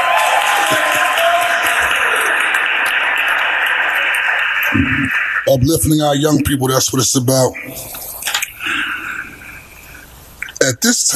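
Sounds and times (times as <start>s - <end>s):
audience applause in council chamber: 0.0s - 6.2s
speech: 5.5s - 8.0s, 10.8s - 11.1s.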